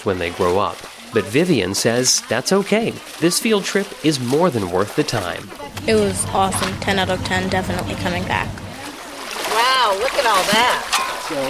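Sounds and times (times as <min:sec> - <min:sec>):
speech: 0:00.0 - 0:08.6, 0:10.0 - 0:11.4
people splashing water in a creek: 0:00.0 - 0:11.4.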